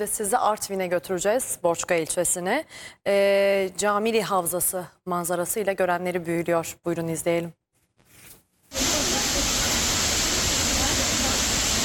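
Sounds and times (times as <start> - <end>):
speech: 0.0 - 7.6
rushing water of Maral Waterfall in Borçka, Artvin: 8.8 - 11.8.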